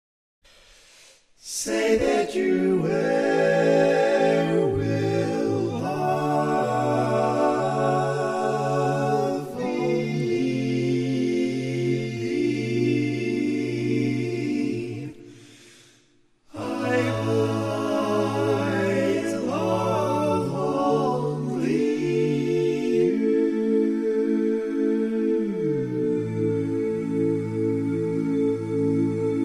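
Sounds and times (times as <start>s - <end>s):
barbershop tags sung by all parts: 1.4s - 15.7s, 16.5s - 29.4s.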